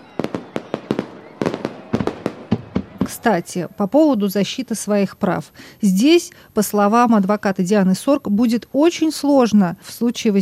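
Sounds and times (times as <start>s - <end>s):
fireworks salute bursting: 0.0s - 3.8s
speech: 3.2s - 10.4s.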